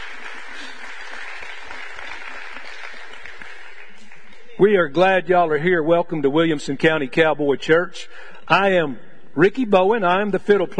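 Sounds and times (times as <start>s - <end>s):
audience applause: 0.0s - 4.4s
speech: 4.6s - 10.7s.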